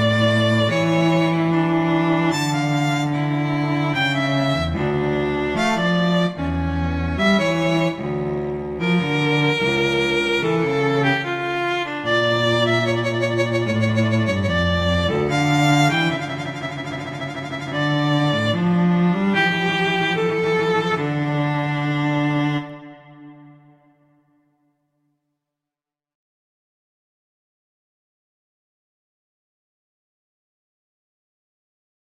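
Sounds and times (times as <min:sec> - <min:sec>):
slow classical piece: 0:00.0 - 0:24.8.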